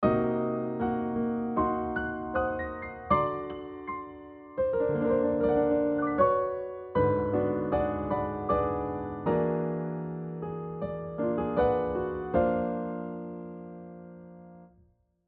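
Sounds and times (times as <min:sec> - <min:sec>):
music with non-functional harmony: 0:00.0 - 0:14.6.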